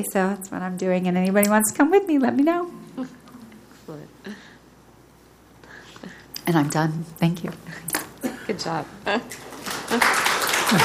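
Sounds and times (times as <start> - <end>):
speech: 0.0 - 3.2, 6.5 - 10.8
applause: 9.6 - 10.8.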